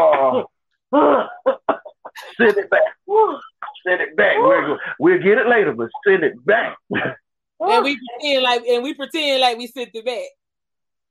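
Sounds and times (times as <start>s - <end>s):
speech: 0.0s - 1.3s, 2.4s - 3.4s, 4.2s - 10.4s
laughter: 1.0s - 5.9s
woman coughing: 1.2s - 2.8s.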